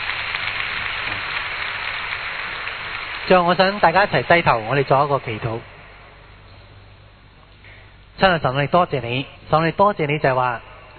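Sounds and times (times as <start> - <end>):
audience applause: 0.0 - 5.4
speech: 3.3 - 5.7, 8.2 - 10.9.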